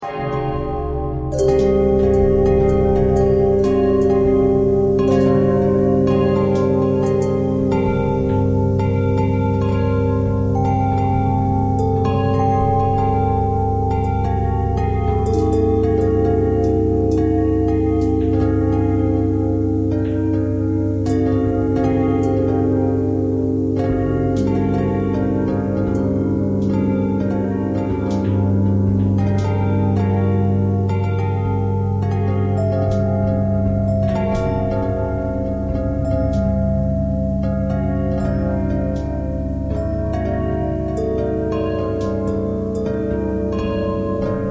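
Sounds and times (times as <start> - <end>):
bells playing pentatonic notes: 0.0 - 44.5.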